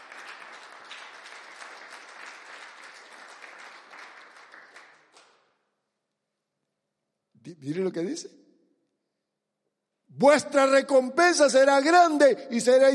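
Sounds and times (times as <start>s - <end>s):
audience applauding loudly: 0.0s - 5.5s
speech: 7.6s - 8.4s, 10.2s - 12.9s.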